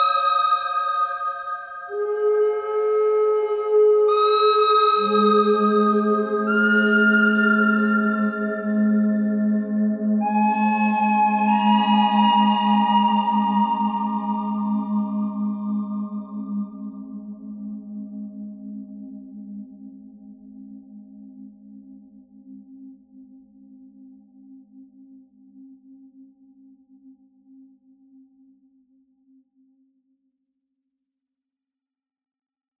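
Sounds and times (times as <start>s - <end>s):
pentatonic bird-like melody: 0.0s - 16.6s.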